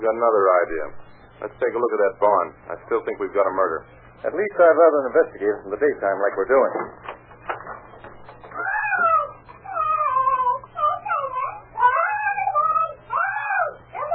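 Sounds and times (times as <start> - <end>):
speech: 0.0 - 7.2
parrot squawking and chattering: 8.3 - 14.1.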